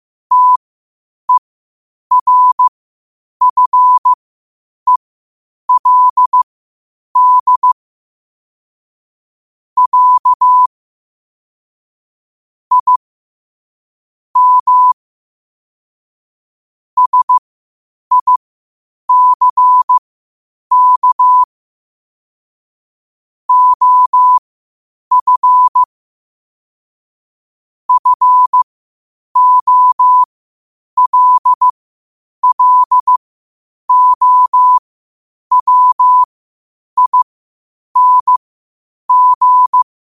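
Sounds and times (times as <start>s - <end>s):
morse code at 5 wpm: 0.3s - 0.6s, 2.1s - 2.7s, 3.4s - 4.2s, 5.7s - 6.4s, 7.2s - 7.8s, 9.8s - 10.7s, 12.7s - 13.0s, 14.4s - 15.0s, 17.0s - 17.4s, 18.1s - 18.4s, 19.1s - 20.0s, 20.7s - 21.5s, 23.5s - 24.4s, 25.1s - 25.9s, 27.9s - 28.7s, 29.4s - 30.3s, 31.0s - 31.7s, 32.4s - 33.2s, 33.9s - 34.8s, 35.5s - 36.3s, 37.0s - 37.3s, 38.0s - 38.4s, 39.1s - 39.9s.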